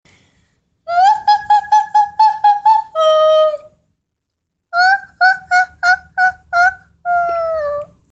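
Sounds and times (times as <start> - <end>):
person singing falsetto: 0.9 - 3.8, 4.8 - 8.1.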